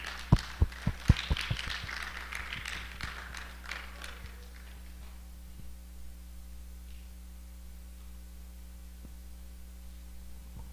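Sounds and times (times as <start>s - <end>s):
audience applauding: 0.0s - 5.0s.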